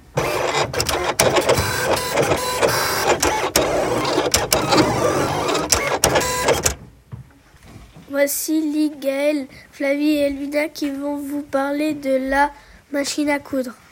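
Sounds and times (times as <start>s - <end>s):
cutting machine blade cutting paper: 0.0s - 6.8s
cutting machine motor hum: 0.0s - 6.9s
cutting machine carriage clicks: 0.2s - 6.8s
speech: 8.2s - 13.8s.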